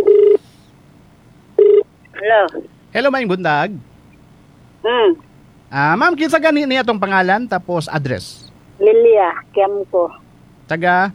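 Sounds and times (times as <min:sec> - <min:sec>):
telephone dialing beeps for a radio call-in: 0:00.0 - 0:00.4, 0:01.6 - 0:01.8
speech: 0:02.3 - 0:03.9, 0:04.8 - 0:11.1.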